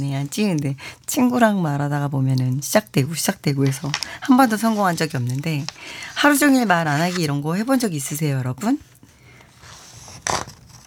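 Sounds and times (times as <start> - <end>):
speech: 0.0 - 8.9
paper rustling: 3.5 - 7.9, 9.3 - 10.8.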